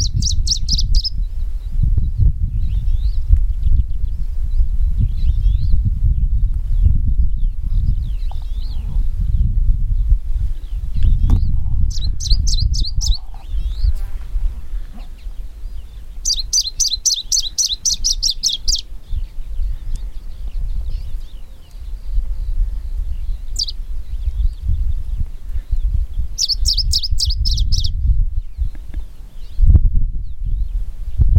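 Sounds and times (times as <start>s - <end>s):
smoky warbler Phylloscopus fuligiventer singing: 0.0s - 31.3s.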